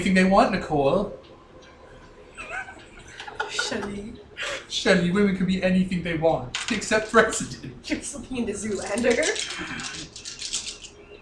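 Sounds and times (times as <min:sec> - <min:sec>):
speech: 0:00.0 - 0:01.2, 0:03.7 - 0:10.3
laughter: 0:02.3 - 0:04.7
dice being rolled: 0:06.6 - 0:07.2, 0:08.7 - 0:11.0.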